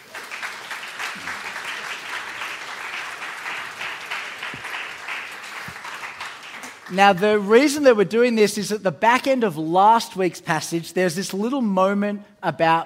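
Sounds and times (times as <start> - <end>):
audience applause welcoming a spoken word performer: 0.0 - 7.0
speech: 6.9 - 12.8.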